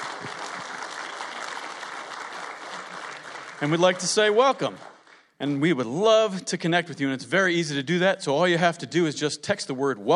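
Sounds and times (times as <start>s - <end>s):
church audience clapping: 0.0s - 5.4s
speech: 3.6s - 10.1s.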